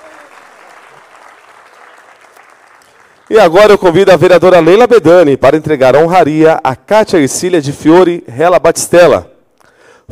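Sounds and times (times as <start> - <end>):
audience applause: 0.0 - 3.6
speech: 3.3 - 9.3.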